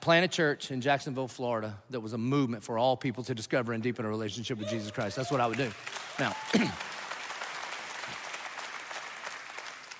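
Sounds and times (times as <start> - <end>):
speech: 0.0 - 6.9
church congregation applause during a sermon: 4.6 - 9.9.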